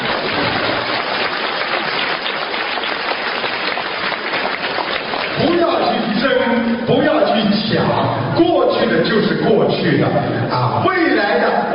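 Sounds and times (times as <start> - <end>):
audience applause at a Buddhist talk: 0.0 - 6.0
speech: 6.5 - 11.7.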